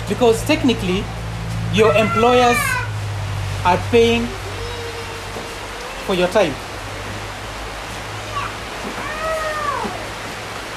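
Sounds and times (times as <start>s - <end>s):
rain: 0.0s - 10.7s
speech: 0.1s - 2.8s, 3.6s - 4.4s, 6.1s - 6.6s.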